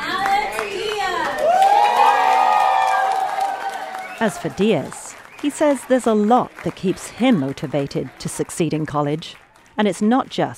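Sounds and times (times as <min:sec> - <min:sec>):
families cheering at graduation ceremony: 0:00.0 - 0:09.7
speech: 0:04.2 - 0:10.5.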